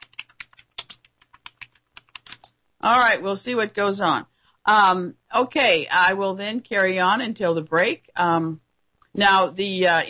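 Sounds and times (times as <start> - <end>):
typing on a computer keyboard: 0.0 - 2.6
speech: 2.8 - 8.6, 9.2 - 10.0.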